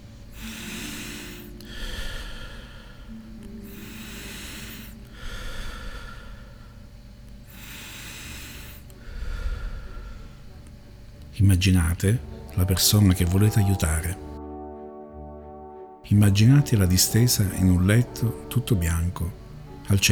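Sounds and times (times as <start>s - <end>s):
slow deep breaths during a guided meditation: 0.0s - 11.4s
low hum: 0.0s - 20.1s
speech: 11.4s - 14.2s, 16.1s - 20.1s.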